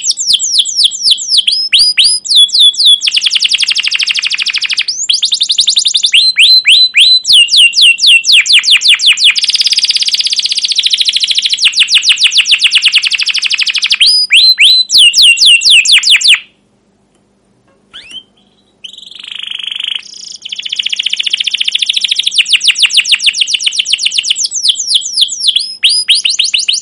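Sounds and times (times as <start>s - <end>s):
canary singing long excited phrases: 0.0s - 16.6s, 17.8s - 26.8s.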